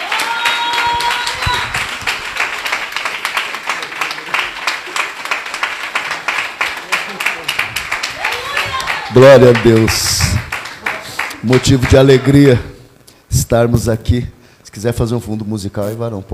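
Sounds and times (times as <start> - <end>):
audience applauding loudly: 0.0 - 12.6
speech: 9.2 - 10.4, 11.4 - 12.7, 13.5 - 16.3.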